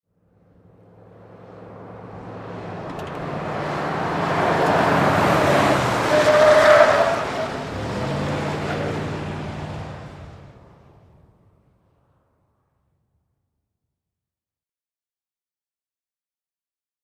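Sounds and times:
Ford Expedition driving fast around a corner: 0.3 - 11.5.

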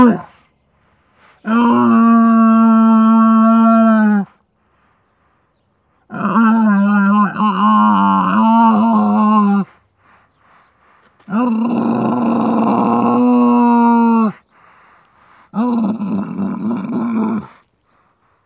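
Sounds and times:
camel bellowing: 1.4 - 4.3, 6.0 - 9.8, 11.2 - 14.4, 15.5 - 17.7.

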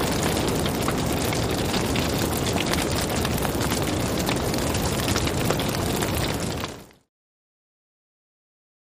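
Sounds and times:
small exterior fire burning: 0.0 - 7.1.

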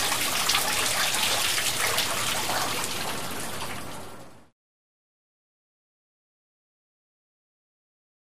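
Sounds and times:
water splashing in a gutter: 0.0 - 4.5.

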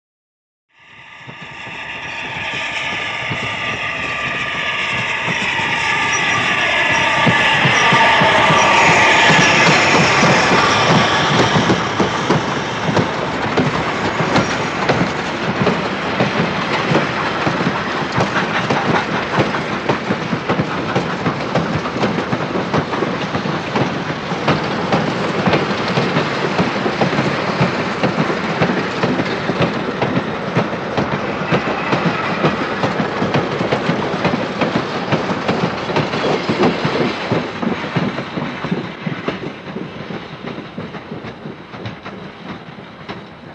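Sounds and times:
steam train: 0.7 - 43.5.

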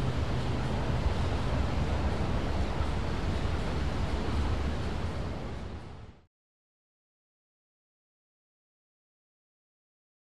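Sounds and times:
elevated train heard from outside: 0.0 - 6.2.

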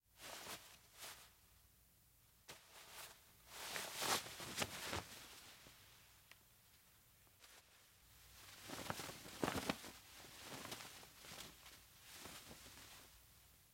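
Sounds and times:
cloth flapping: 0.2 - 1.3, 2.5 - 5.8, 7.4 - 13.3.

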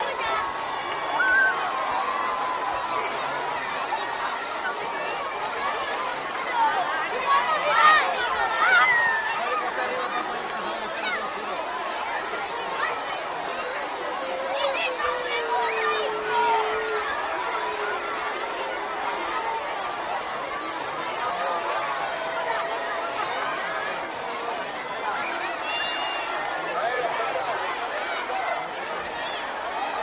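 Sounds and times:
group of children playing happily: 0.0 - 30.0.

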